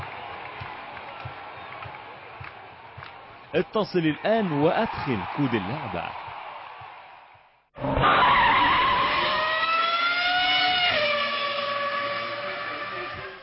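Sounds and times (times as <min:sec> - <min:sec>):
speech: 0:03.5 - 0:06.2
racing car engine roar in Need for Speed: 0:07.8 - 0:13.4
tires screeching in a long skid in Need for Speed: 0:07.8 - 0:13.4.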